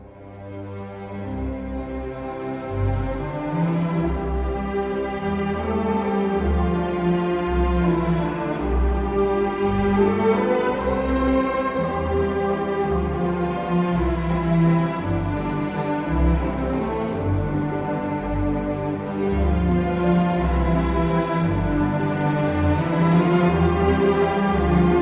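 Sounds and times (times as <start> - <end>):
waltz music: 0.0 - 25.0.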